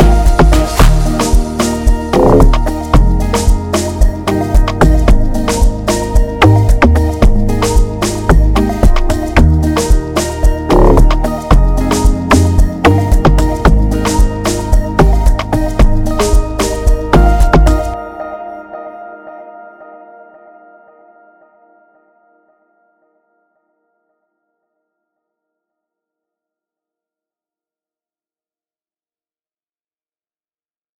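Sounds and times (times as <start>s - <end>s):
amapiano type beat: 0.0s - 18.0s.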